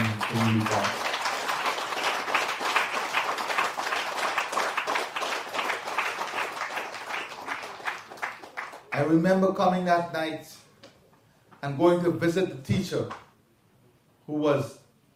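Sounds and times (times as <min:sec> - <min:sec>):
audience applause: 0:00.0 - 0:09.0
speech: 0:00.4 - 0:01.0, 0:09.1 - 0:10.6, 0:11.6 - 0:13.2, 0:14.3 - 0:14.8.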